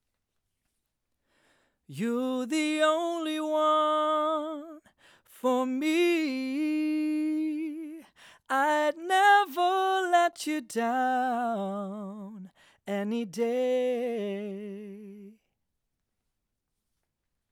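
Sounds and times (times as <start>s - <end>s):
vocals: 1.9s - 15.5s.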